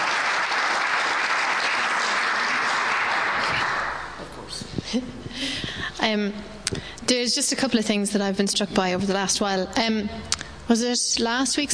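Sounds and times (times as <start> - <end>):
audience clapping: 0.0 - 4.4
speech: 4.9 - 5.5, 6.1 - 11.7.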